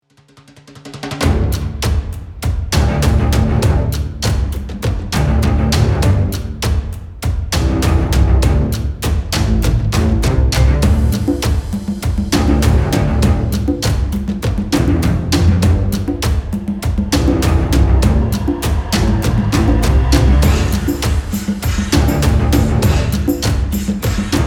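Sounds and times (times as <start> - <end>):
music: 0.0 - 24.4.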